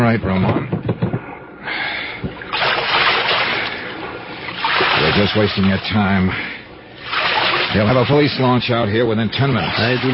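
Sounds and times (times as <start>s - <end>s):
speech: 0.1s - 1.0s, 5.0s - 6.5s, 7.7s - 10.1s
wooden paddle splashing water rowing a boat across a bay: 2.3s - 5.9s, 7.0s - 8.4s.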